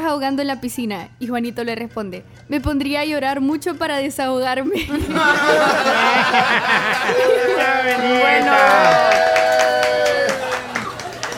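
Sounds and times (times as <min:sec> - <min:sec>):
speech: 0:00.1 - 0:09.5
laughter: 0:04.8 - 0:11.3
crowd applause: 0:05.1 - 0:11.3.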